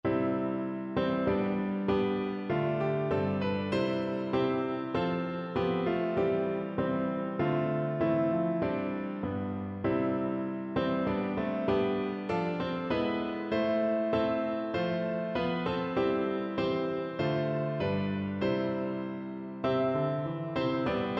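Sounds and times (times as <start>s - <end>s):
piano: 0.0s - 21.1s.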